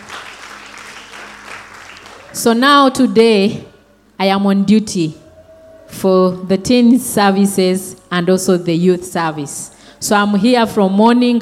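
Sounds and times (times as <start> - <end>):
audience clapping: 0.0 - 2.5
speech: 2.3 - 5.2, 5.9 - 11.4.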